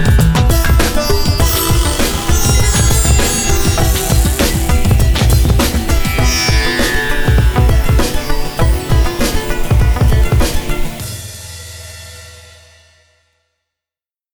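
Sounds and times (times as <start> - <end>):
hip hop music: 0.5 - 11.0.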